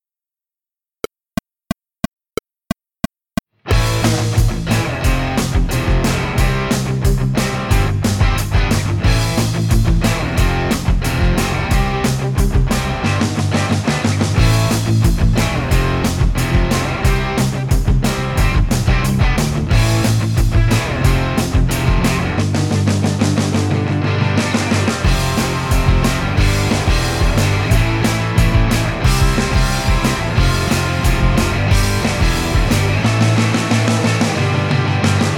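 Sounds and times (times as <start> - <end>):
drums: 3.0 - 35.3.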